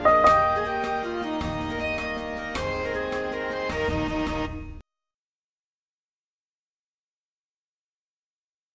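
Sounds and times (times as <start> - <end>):
soprano backing track: 0.0 - 4.0.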